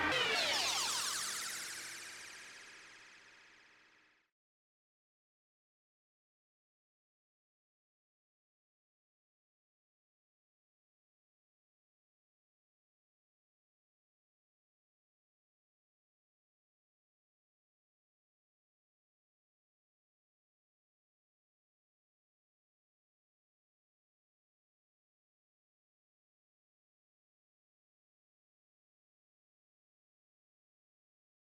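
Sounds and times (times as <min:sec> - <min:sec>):
delay effects: 0:00.1 - 0:03.9.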